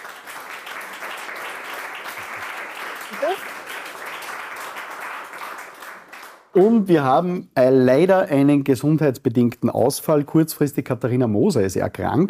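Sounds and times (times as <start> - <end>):
audience applause: 0.0 - 6.5
speech: 3.2 - 3.6, 6.6 - 12.2.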